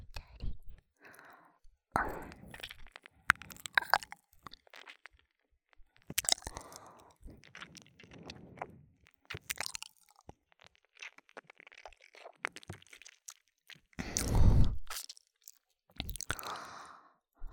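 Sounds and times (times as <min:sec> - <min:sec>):
gentle biting and ear licking ASMR: 0:02.0 - 0:05.1, 0:05.9 - 0:16.6.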